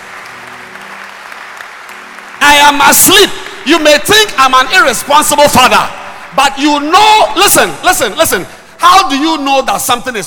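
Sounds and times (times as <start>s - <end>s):
crowd applauding: 0.0s - 4.1s
speech: 2.7s - 10.2s.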